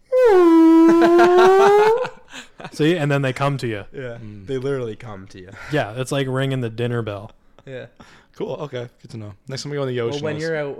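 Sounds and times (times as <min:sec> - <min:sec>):
person imitating a whale call: 0:00.0 - 0:02.1
laughter: 0:00.8 - 0:03.0
speech: 0:02.8 - 0:10.7.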